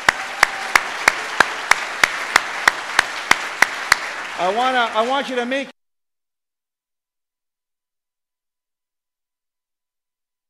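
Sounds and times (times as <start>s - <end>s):
audience applause: 0.0s - 5.7s
speech: 4.4s - 5.7s.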